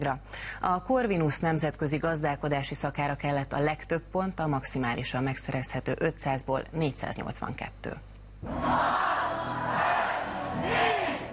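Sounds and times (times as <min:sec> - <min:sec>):
speech: 0:00.0 - 0:09.1
large crowd roaring and cheering at results party: 0:08.4 - 0:11.3.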